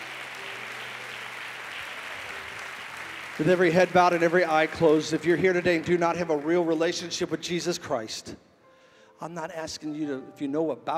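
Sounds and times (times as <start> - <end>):
audience applause: 0.0 - 7.1
speech: 3.4 - 8.4, 9.2 - 10.9.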